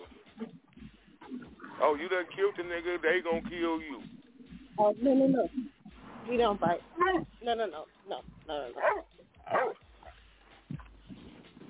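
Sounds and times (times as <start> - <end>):
speech: 1.8 - 4.1, 4.8 - 5.7, 6.3 - 9.6
dog barking: 8.8 - 10.2.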